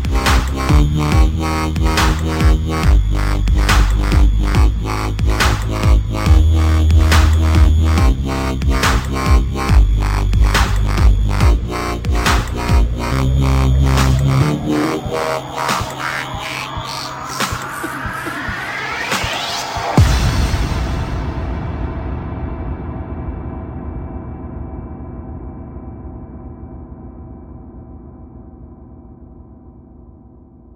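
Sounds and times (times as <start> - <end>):
dubstep remix: 0.0 - 21.2.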